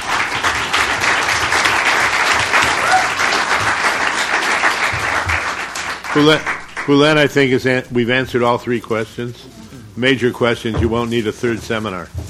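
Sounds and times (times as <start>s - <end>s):
audience applause: 0.0s - 7.2s
speech: 6.2s - 12.2s.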